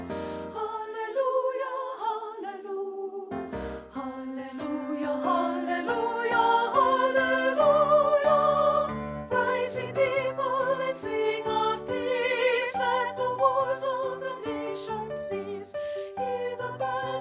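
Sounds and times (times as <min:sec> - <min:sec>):
treble soprano voice: 0:00.1 - 0:17.1.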